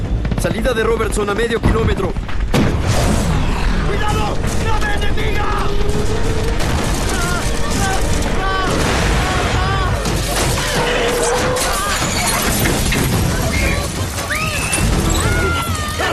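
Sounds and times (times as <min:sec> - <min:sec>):
heavy enemy gunfire in a battle: 0:00.0 - 0:14.2
booming blasts in a battle: 0:00.0 - 0:15.3
speech: 0:00.4 - 0:03.1, 0:03.9 - 0:06.4
voices shouting: 0:07.1 - 0:16.1.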